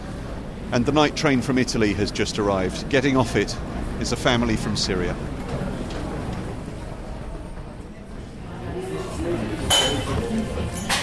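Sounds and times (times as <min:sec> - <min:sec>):
murmur of indistinct voices in a busy cafe: 0:00.0 - 0:11.0
speech: 0:00.7 - 0:05.4
clinking dishes and cutlery in a busy cafe: 0:09.6 - 0:11.0.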